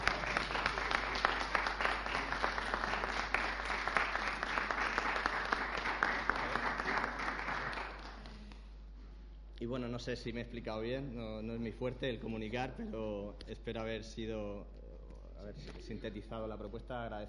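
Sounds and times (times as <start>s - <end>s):
audience applause: 0.0s - 8.3s
speech: 9.7s - 14.8s, 15.4s - 17.2s.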